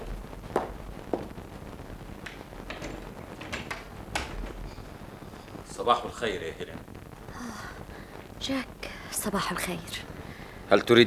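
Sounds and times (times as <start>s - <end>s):
soft footsteps: 0.0s - 5.7s
door latch clicking and rattling as the door is opened: 2.6s - 4.6s
speech: 5.8s - 6.9s, 8.4s - 10.1s, 10.7s - 11.0s.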